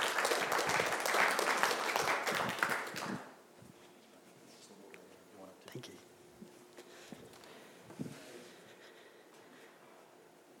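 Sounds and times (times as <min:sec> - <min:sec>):
audience applause welcoming a speaker: 0:00.0 - 0:03.3.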